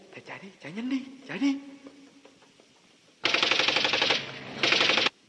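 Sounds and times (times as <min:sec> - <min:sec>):
speech: 0:00.3 - 0:01.8
machine-gun fire: 0:03.2 - 0:05.1.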